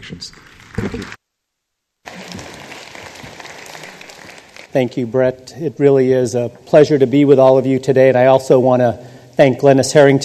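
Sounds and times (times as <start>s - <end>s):
audience clapping welcoming a speaker to the stage: 0.0s - 1.2s, 2.0s - 5.0s
speech: 0.1s - 1.2s, 4.7s - 10.2s.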